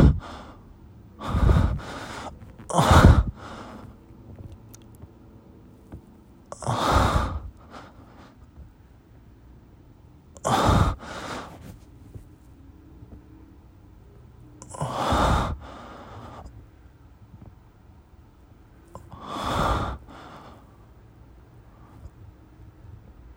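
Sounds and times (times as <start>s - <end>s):
person breathing and moaning while masturbating: 0.0s - 0.6s, 1.2s - 4.5s, 6.6s - 8.0s, 10.4s - 11.8s, 14.6s - 16.3s, 19.0s - 20.6s.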